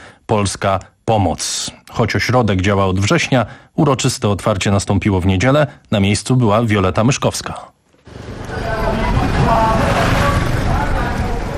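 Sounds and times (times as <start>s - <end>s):
speech: 0.3s - 8.6s
congested road traffic rumble in Kampala: 8.1s - 11.5s.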